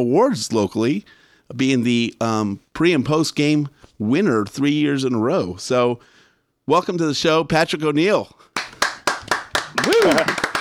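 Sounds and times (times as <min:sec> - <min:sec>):
speech: 0:00.0 - 0:08.5, 0:09.7 - 0:10.5
audience applause: 0:08.6 - 0:10.5.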